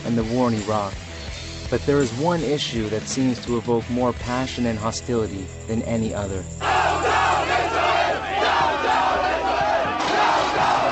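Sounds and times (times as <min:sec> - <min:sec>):
speech: 0:00.1 - 0:01.1, 0:01.7 - 0:06.7
large crowd chanting and shouting: 0:06.6 - 0:10.9.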